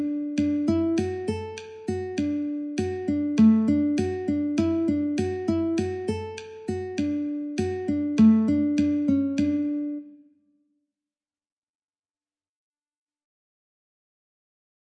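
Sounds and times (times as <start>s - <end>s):
guitar playing in D: 0.0s - 10.2s
metronome clicking at 50: 0.4s - 10.0s.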